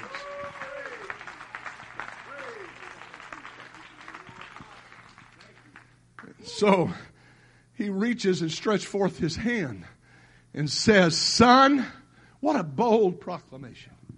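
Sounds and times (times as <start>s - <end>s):
audience clapping hands in praise: 0.0s - 6.9s
speech: 6.6s - 7.1s, 7.8s - 10.0s, 10.6s - 14.0s.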